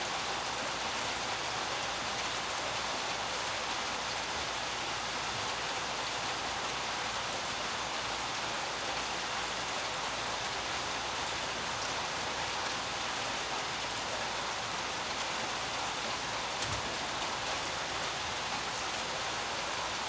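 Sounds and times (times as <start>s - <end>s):
light rain on street: 0.0s - 20.0s.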